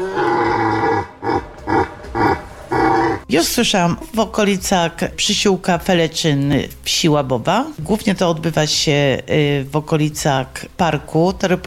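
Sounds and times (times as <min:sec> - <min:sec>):
red deer stag roaring in rut: 0:00.0 - 0:03.3
speech: 0:03.3 - 0:11.6.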